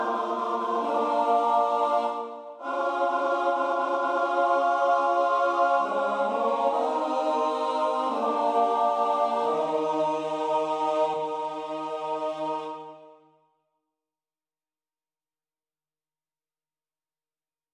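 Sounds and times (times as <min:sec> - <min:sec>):
SATB four-part choir singing: 0:00.0 - 0:13.2.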